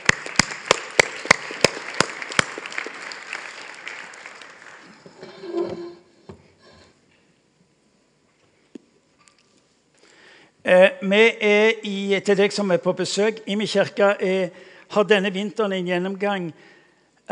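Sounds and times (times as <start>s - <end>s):
sharp loud claps: 0.0s - 4.9s
audience applause: 0.0s - 5.3s
speech: 10.7s - 17.3s.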